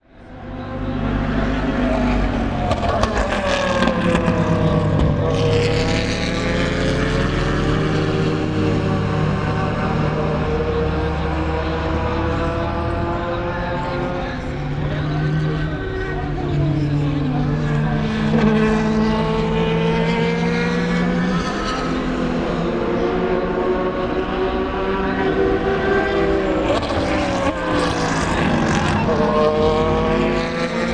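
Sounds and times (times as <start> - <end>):
various cars after the Esses at Le Mans: 0.1 - 30.9.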